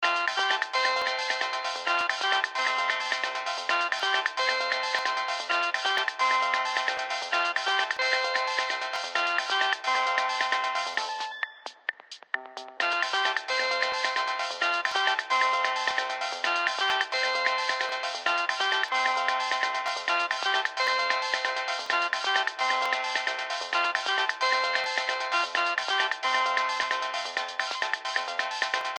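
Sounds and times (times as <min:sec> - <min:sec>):
conga song: 0:00.0 - 0:28.9.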